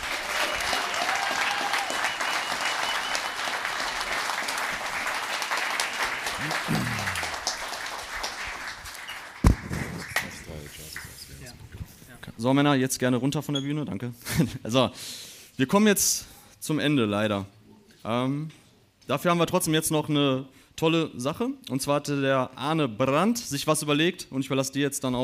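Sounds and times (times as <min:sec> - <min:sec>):
applause: 0:00.0 - 0:11.5
laughter: 0:06.2 - 0:07.6
speech: 0:12.4 - 0:25.2.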